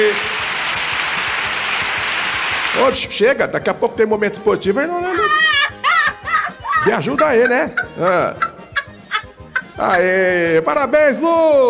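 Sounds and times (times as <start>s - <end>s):
applause: 0.0s - 2.8s
speech: 2.8s - 5.5s, 6.8s - 8.5s, 9.8s - 11.6s
laughter: 4.7s - 10.6s.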